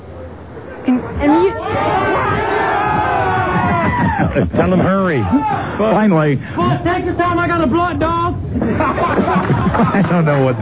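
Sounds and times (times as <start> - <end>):
speech: 0.9 - 2.0, 4.2 - 10.6
crowd shouting in unison: 1.2 - 4.4
laughter: 2.7 - 6.8, 8.5 - 10.6.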